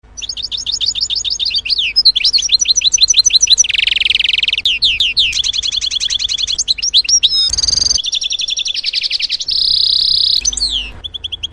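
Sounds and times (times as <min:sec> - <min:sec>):
canary singing: 0:00.0 - 0:11.5.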